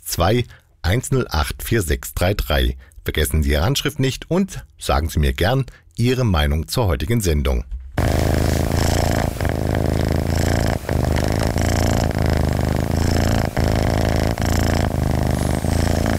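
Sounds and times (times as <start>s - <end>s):
speech: 0.1s - 8.5s
cat purring contentedly: 8.0s - 16.1s.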